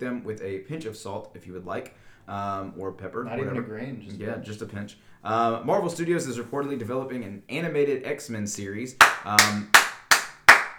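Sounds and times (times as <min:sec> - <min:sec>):
speech: 0:00.0 - 0:09.8
person clapping hands: 0:09.0 - 0:10.7.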